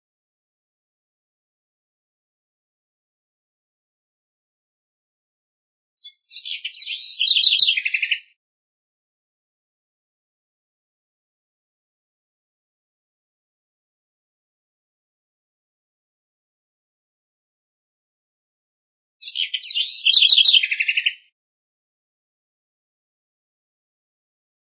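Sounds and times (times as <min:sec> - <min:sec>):
house wren singing: 0:06.0 - 0:08.4, 0:19.2 - 0:21.3.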